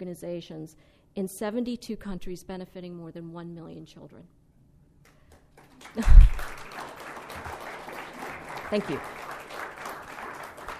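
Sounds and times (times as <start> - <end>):
speech: 0.0 - 4.4, 5.9 - 6.6, 8.7 - 9.2
audience clapping: 5.1 - 10.7.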